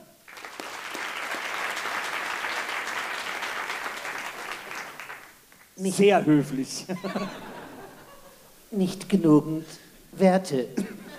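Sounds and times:
audience applause: 0.3s - 5.7s
speech: 5.8s - 7.5s, 8.7s - 11.1s
laughter: 6.9s - 8.5s.

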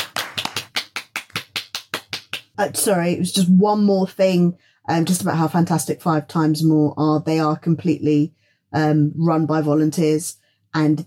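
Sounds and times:
audience handclaps for a speaker after a talk: 0.0s - 2.6s
speech: 2.6s - 11.0s.

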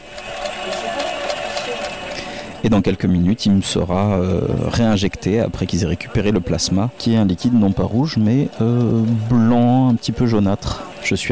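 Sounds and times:
apheresis machine pulsing clicks: 0.0s - 11.2s
plasma donation apheresis machine whirring: 0.0s - 11.2s
speech: 2.6s - 11.2s.

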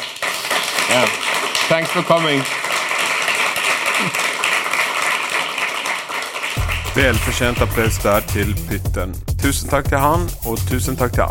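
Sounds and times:
audience applause: 0.0s - 8.2s
speech: 0.9s - 2.7s, 4.0s - 4.2s, 7.0s - 11.2s.

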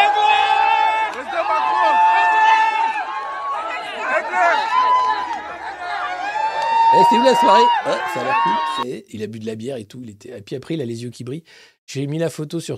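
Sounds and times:
dense crowd chatter: 0.0s - 8.8s
speech: 7.1s - 12.7s.

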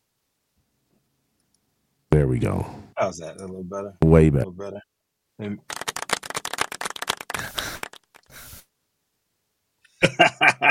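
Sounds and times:
speech: 2.3s - 5.8s
weak round of applause: 5.6s - 8.3s
laughter: 10.0s - 10.6s.

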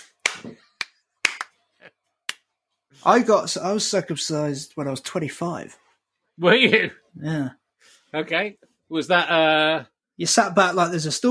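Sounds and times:
hands clapping to swat a fly: 0.0s - 1.6s
speech: 3.0s - 5.8s, 6.4s - 11.2s.

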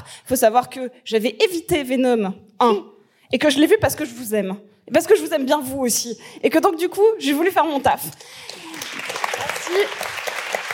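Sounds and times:
speech: 0.2s - 10.2s
crowd applauding: 8.2s - 10.7s.

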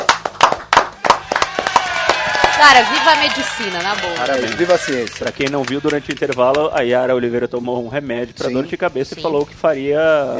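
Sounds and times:
hand clapping: 0.0s - 7.0s
speech: 2.6s - 10.3s.

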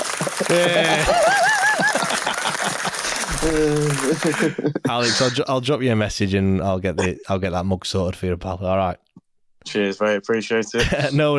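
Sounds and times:
hand clapping: 0.0s - 4.7s
laughter: 0.0s - 5.4s, 10.7s - 11.3s
speech: 0.4s - 1.5s, 3.4s - 9.0s, 9.7s - 11.3s.

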